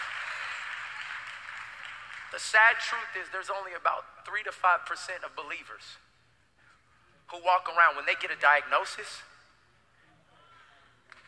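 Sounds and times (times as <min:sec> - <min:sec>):
audience clapping: 0:00.0 - 0:03.2
speech: 0:02.3 - 0:06.1, 0:07.3 - 0:09.3.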